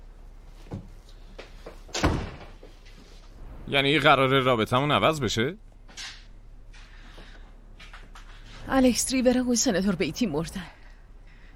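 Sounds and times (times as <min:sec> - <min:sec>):
soft knocks and shuffles: 0:00.4 - 0:03.5, 0:06.7 - 0:09.0
door pushed shut in a Persian-dubbed drama: 0:01.9 - 0:02.6
speech: 0:03.7 - 0:05.6, 0:08.8 - 0:10.8.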